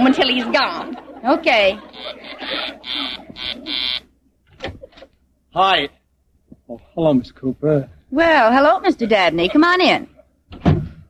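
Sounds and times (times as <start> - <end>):
laughter: 0.0 - 4.1, 8.6 - 10.4
speech: 0.1 - 4.0, 5.5 - 6.0, 6.7 - 10.7
electric door buzzer: 2.8 - 4.1.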